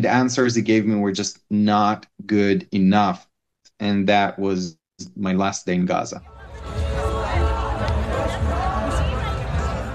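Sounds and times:
speech: 0:00.0 - 0:06.9
crowd at a political rally in Jerusalem: 0:06.2 - 0:09.9.

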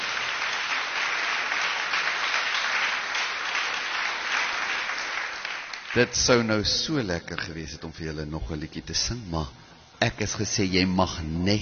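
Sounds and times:
audience applause: 0:00.0 - 0:06.5
speech: 0:06.0 - 0:11.5.

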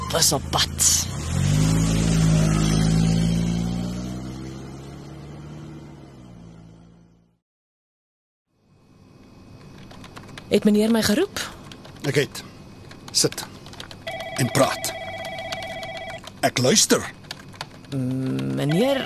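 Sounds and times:
speech: 0:00.1 - 0:01.4, 0:10.5 - 0:12.5, 0:13.2 - 0:13.6, 0:14.4 - 0:15.0, 0:16.4 - 0:17.2, 0:17.9 - 0:19.0
car engine driving away: 0:00.5 - 0:07.4.

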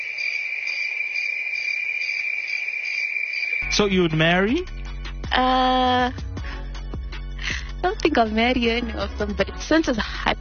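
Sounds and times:
cricket chirping sound effect: 0:00.0 - 0:05.0
speech: 0:03.7 - 0:06.2, 0:07.8 - 0:10.4.

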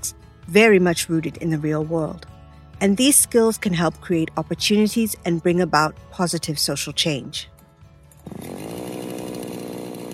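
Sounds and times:
speech: 0:00.0 - 0:07.5
chainsaw running: 0:08.1 - 0:10.1.

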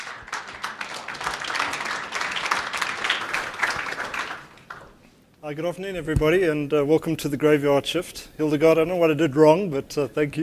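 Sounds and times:
audience applause: 0:00.0 - 0:04.9
speech: 0:05.5 - 0:10.4.

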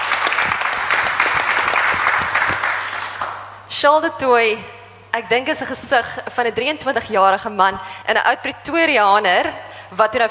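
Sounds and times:
audience applause: 0:00.0 - 0:03.4
speech: 0:03.8 - 0:10.2.

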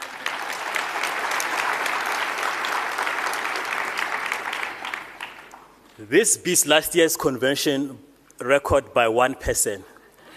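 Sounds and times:
large convention audience clapping: 0:00.0 - 0:05.9
speech: 0:06.0 - 0:09.9.

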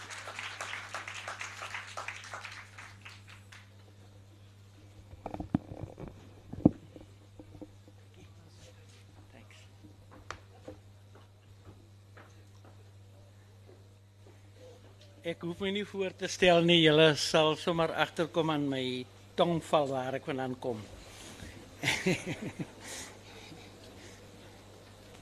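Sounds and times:
audience applause: 0:00.0 - 0:03.8
speech: 0:15.2 - 0:21.0, 0:22.0 - 0:23.1
laughter: 0:21.8 - 0:24.0.

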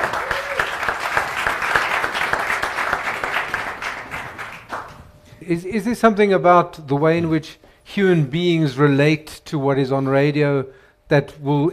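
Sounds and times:
audience applause for panelists: 0:00.0 - 0:05.2
speech: 0:05.5 - 0:11.7.

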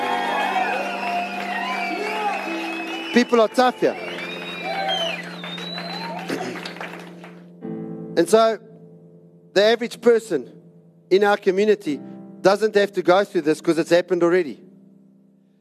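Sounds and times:
audience applauding and cheering: 0:00.0 - 0:07.5
speech: 0:03.1 - 0:04.1, 0:08.2 - 0:08.6, 0:09.6 - 0:14.6.

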